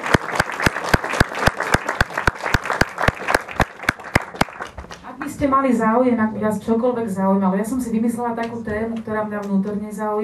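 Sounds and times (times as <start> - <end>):
audience applause: 0.0 - 5.0
speech: 5.4 - 10.2.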